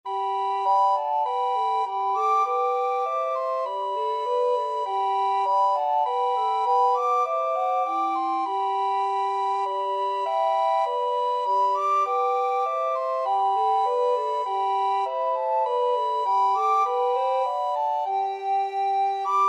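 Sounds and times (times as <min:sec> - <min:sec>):
recorder trio playing: 0:00.1 - 0:19.4.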